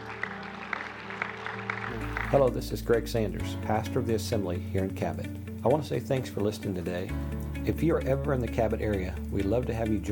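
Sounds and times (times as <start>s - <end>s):
audience clapping hands: 0.0s - 2.7s
speech: 2.3s - 10.0s.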